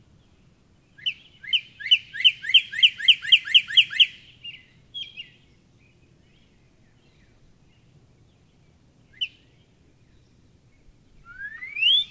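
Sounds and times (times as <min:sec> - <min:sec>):
Northern cardinal singing steep downslurred whistles: 0:01.4 - 0:04.2, 0:11.3 - 0:12.1.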